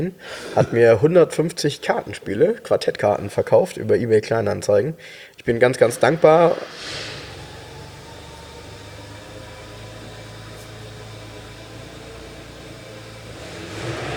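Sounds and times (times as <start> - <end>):
speech: 0.0 - 7.2
car engine pulling up: 5.4 - 14.1.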